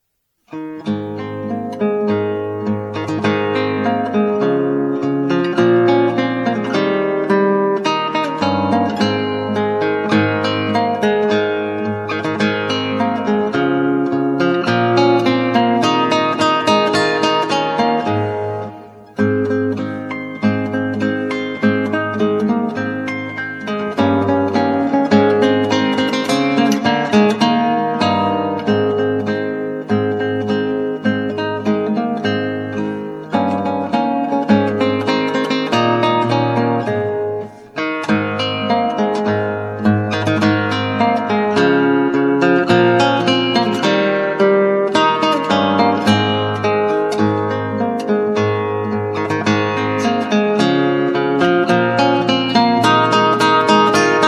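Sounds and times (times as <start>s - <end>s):
classical guitar: 0.0s - 54.2s.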